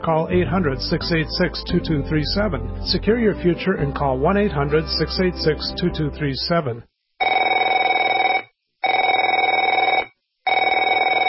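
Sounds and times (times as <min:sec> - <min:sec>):
speech: 0:00.0 - 0:06.9
telephone ringing with a buzzy trilling bell: 0:07.2 - 0:11.2.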